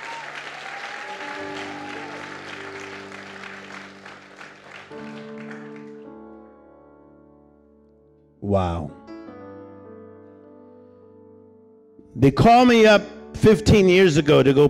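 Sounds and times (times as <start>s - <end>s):
audience clapping hands: 0.0s - 6.4s
speech: 8.5s - 9.0s, 12.2s - 14.6s.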